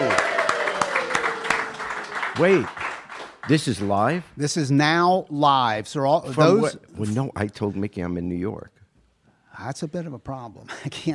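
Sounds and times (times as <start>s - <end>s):
sharp claps: 0.0s - 4.3s
speech: 2.4s - 2.8s, 3.5s - 8.8s, 9.6s - 11.1s.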